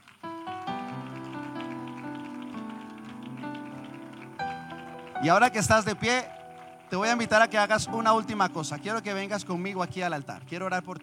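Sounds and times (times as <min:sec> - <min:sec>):
church audience applauding: 0:00.0 - 0:11.0
sustained keyboard chords: 0:00.0 - 0:11.0
speech: 0:05.2 - 0:11.0.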